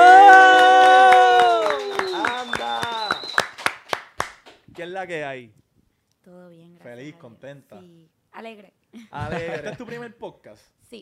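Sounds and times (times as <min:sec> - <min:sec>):
audience cheering: 0:00.0 - 0:03.8
audience applause: 0:00.0 - 0:04.6
speech: 0:05.0 - 0:05.6, 0:06.2 - 0:11.0
laughter: 0:09.1 - 0:10.1.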